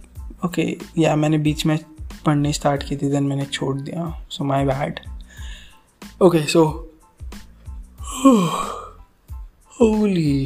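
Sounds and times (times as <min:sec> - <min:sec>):
speech: 0:00.4 - 0:05.1, 0:06.2 - 0:06.9, 0:08.2 - 0:08.8, 0:09.8 - 0:10.4
long yawn from a very tired person: 0:08.0 - 0:09.0.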